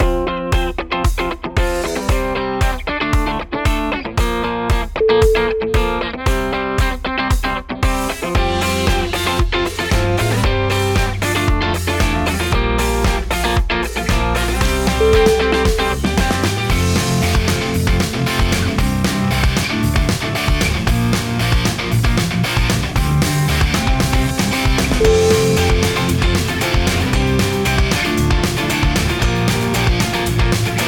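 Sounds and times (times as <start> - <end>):
punk music: 0.0 - 30.8.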